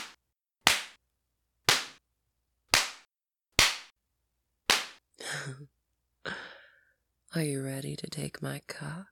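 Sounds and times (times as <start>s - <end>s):
belt lashes striking skin: 0.0s - 1.0s, 2.7s - 3.9s, 4.7s - 5.0s
speech: 5.3s - 6.4s, 7.3s - 9.0s.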